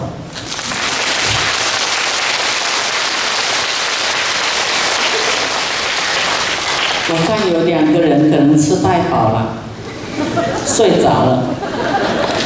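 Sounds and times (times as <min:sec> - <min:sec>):
audience clapping: 0:00.3 - 0:07.9
laughter: 0:04.9 - 0:05.7, 0:09.9 - 0:12.4
speech: 0:07.2 - 0:09.6, 0:10.6 - 0:11.7.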